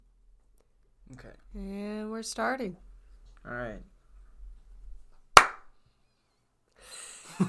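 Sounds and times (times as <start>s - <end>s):
speech: 1.1s - 3.9s
hand clap: 5.4s - 5.7s.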